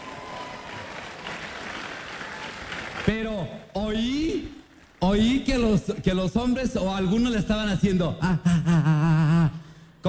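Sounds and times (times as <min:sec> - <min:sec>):
audience applause: 0:00.0 - 0:03.2
speech: 0:03.1 - 0:10.0.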